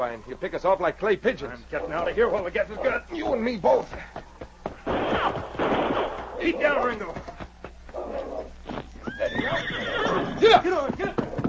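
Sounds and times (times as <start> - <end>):
speech: 0.0 - 4.2, 6.4 - 7.3, 9.4 - 11.2
clattering hooves: 0.6 - 11.4
hollow hoof thuds: 1.6 - 11.4
horse whinnying as riders flee: 8.0 - 11.4.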